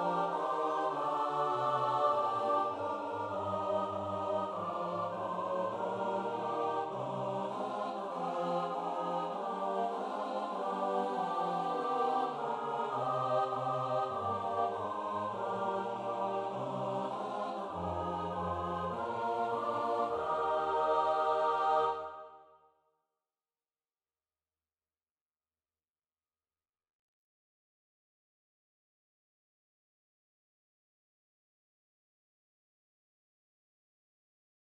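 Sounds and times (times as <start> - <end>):
SATB four-part choir singing: 0.0 - 22.4.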